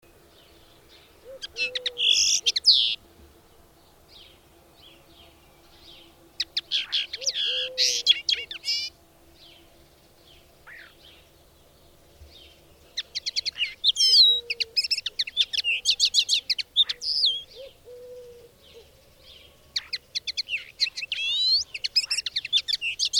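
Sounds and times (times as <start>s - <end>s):
birds singing: 0.0s - 23.1s
speech: 1.4s - 2.0s.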